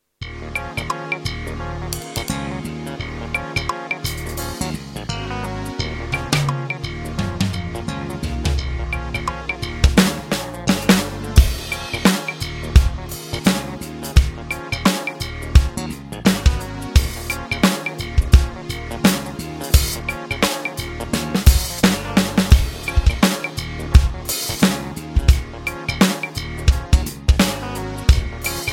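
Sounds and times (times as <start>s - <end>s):
slow funk groove on a Roland TD-12 drum kit: 0.5s - 28.7s.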